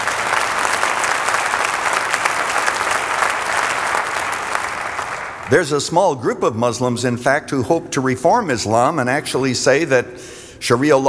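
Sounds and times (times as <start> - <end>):
crowd applauding: 0.0 - 5.8
speech: 5.5 - 11.0.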